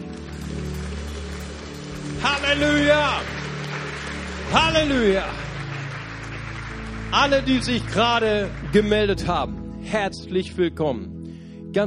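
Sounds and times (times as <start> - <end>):
audience applause: 0.0 - 9.4
speech: 2.2 - 3.4, 4.5 - 5.4, 7.1 - 11.8.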